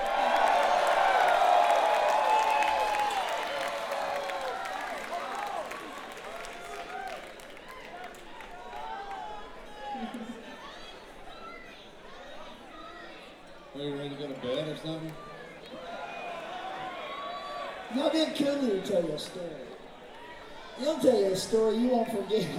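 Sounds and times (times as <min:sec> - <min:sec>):
concert crowd applauding a bass guitarist: 0:00.0 - 0:10.4
concert crowd cheering a bass guitarist: 0:00.0 - 0:13.4, 0:14.2 - 0:22.5
speech: 0:18.3 - 0:19.6, 0:20.8 - 0:22.5.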